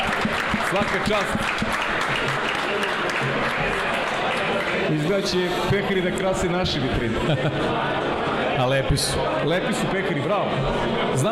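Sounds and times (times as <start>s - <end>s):
audience applause for a Fantasy League champion at a trophy ceremony: 0.0s - 6.3s
speech: 0.7s - 1.7s, 4.9s - 11.2s
laughter: 2.1s - 8.4s.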